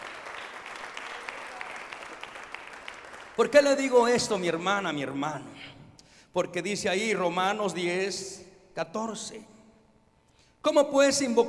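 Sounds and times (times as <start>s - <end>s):
audience applauding: 0.0s - 3.6s
speech: 3.4s - 9.5s, 10.6s - 11.4s.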